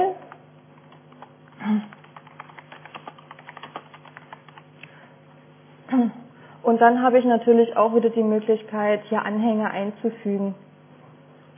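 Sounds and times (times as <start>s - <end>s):
typing on a computer keyboard entering an email subject: 0.2s - 4.7s
speech: 6.7s - 10.6s.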